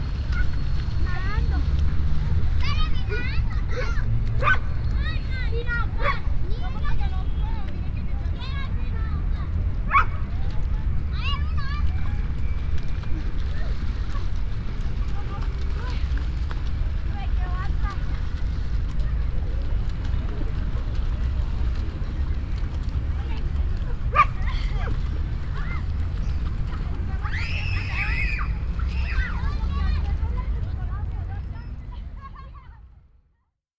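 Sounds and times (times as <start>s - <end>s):
water fountain jets in Bogota: 0.0s - 32.9s.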